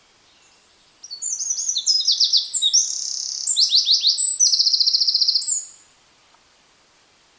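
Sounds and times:
Eurasian wren trilling song: 0.4s - 5.8s.

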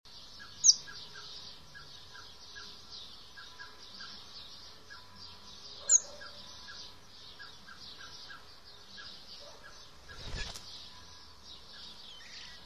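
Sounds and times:
common blackbird thin high calls: 0.4s - 12.6s
faint high hiss: 10.0s - 11.2s.

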